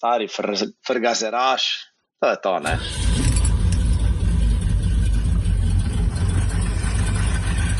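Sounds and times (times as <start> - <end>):
speech: 0.0 - 3.2
V8 pickup engine rumbling: 2.7 - 7.7.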